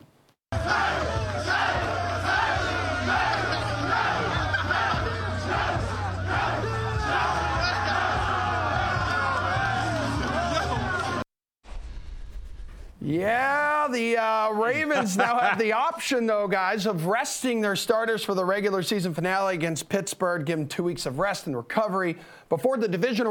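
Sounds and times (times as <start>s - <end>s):
team cheering and shouting in a locker room: 0.6s - 11.2s
laughter: 2.8s - 5.6s, 8.7s - 11.2s, 14.5s - 16.0s
speech: 14.0s - 23.2s.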